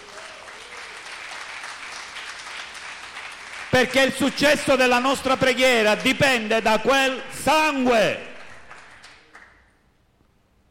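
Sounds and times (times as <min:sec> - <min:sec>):
loud audience applause: 0:00.0 - 0:05.0, 0:08.3 - 0:09.7
speech: 0:03.8 - 0:08.3.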